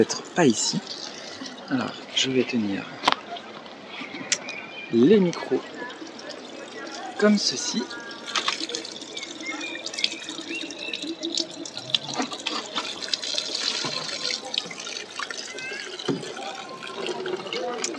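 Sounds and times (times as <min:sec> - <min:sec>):
speech: 0:00.0 - 0:01.1, 0:01.7 - 0:03.1, 0:04.9 - 0:05.8, 0:07.2 - 0:08.0
Lourdes water sprinkled in a blessing: 0:00.4 - 0:02.0, 0:04.3 - 0:17.9.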